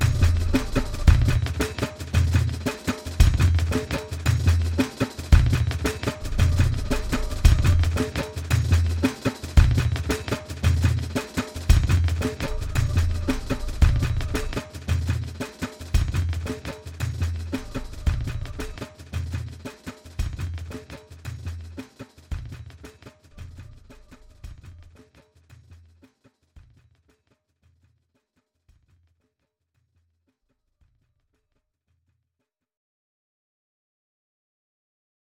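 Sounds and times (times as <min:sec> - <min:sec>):
Indian drums: 0:00.0 - 0:27.9.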